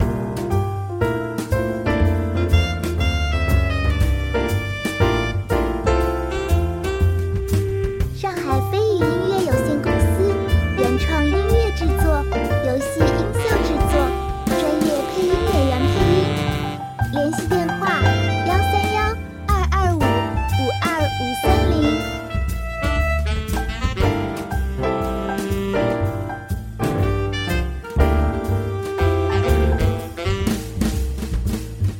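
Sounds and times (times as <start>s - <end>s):
relaxed jazz: 0.0s - 31.9s.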